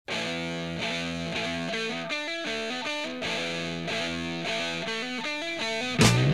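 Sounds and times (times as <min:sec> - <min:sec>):
music: 0:00.1 - 0:06.3.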